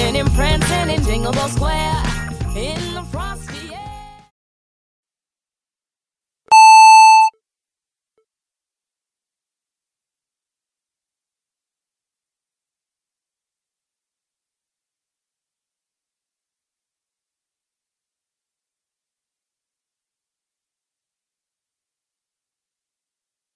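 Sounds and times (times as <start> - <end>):
Christmas song: 0.0 - 4.2.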